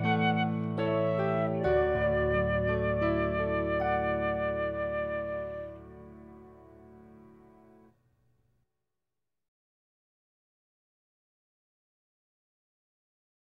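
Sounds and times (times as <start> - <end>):
flutes: 0.0 - 6.5.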